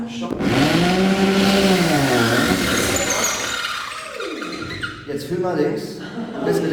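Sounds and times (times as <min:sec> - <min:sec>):
speech: 0:00.1 - 0:01.0, 0:05.3 - 0:06.7
electric drill drilling into a wall: 0:00.3 - 0:05.1.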